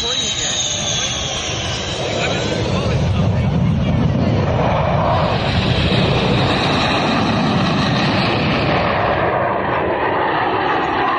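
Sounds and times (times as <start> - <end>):
voices: 0.0 - 5.6
fighter jet roaring: 0.0 - 11.1.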